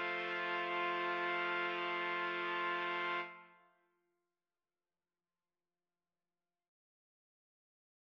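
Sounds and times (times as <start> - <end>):
trumpets playing: 0.0 - 3.4.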